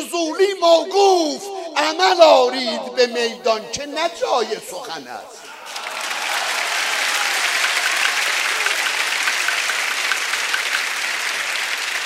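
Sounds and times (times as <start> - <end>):
speech: 0.2 - 5.5
crowd clapping: 5.5 - 12.0.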